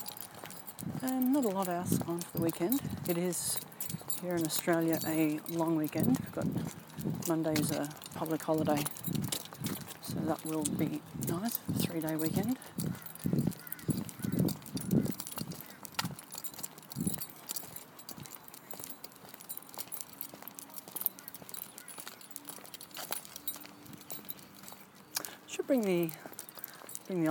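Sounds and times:
speech: 0.8 - 9.2, 10.3 - 12.9, 25.7 - 26.3
birds calling outside: 5.7 - 27.2.

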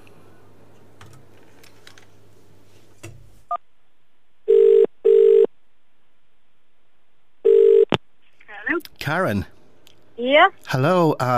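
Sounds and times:
telephone ringback tone: 4.5 - 5.5, 7.4 - 7.9
speech: 9.1 - 9.6, 10.2 - 11.3.

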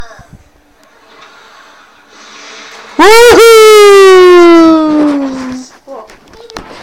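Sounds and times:
person shouting woohoo: 3.0 - 5.3.

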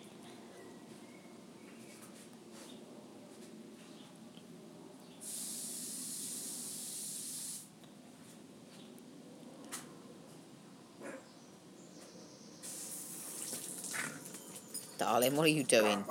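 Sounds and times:
water spraying out of a pipe: 5.2 - 7.7, 12.6 - 14.3
speech: 15.0 - 16.0.

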